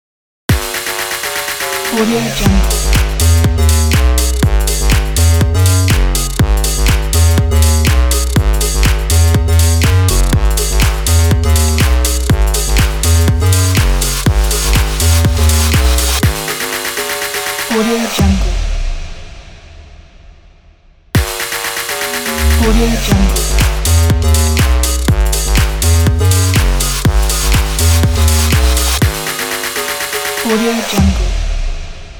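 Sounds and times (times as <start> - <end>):
deep house logo jingle: 0.5 - 18.9, 21.2 - 32.1.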